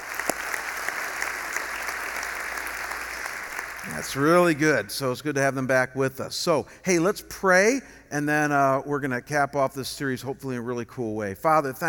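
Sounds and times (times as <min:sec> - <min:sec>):
church congregation applause: 0:00.0 - 0:04.4
speech: 0:03.9 - 0:11.8.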